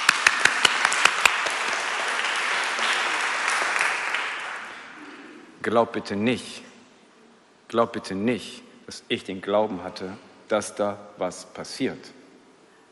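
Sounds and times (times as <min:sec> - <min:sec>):
audience applause: 0:00.0 - 0:05.0
speech: 0:05.6 - 0:06.7, 0:07.7 - 0:12.2.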